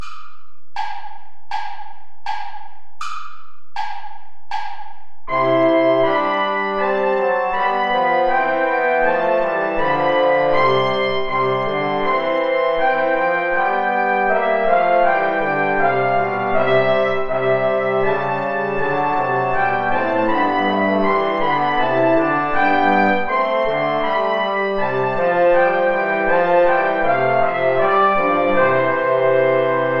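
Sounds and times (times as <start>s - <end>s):
play-along backing music without trumpet: 0.0s - 29.9s.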